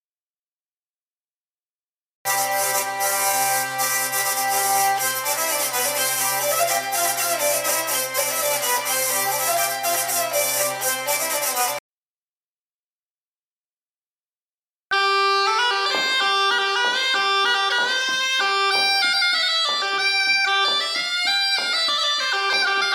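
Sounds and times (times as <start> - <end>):
instrumental medley intro: 2.3 - 11.8, 14.9 - 22.9.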